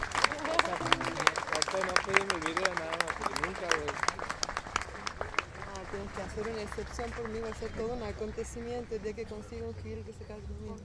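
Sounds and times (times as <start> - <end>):
audience applause: 0.0 - 6.9
speech: 6.2 - 10.8.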